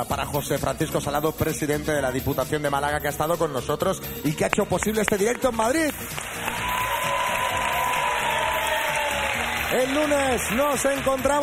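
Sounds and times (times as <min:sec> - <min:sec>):
speech: 0:00.0 - 0:06.3, 0:09.7 - 0:11.4
audience applause: 0:05.9 - 0:11.4.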